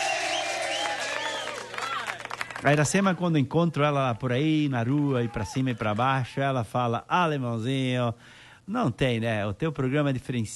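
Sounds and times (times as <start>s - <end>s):
applause: 0.0s - 6.3s
speech: 2.6s - 10.5s.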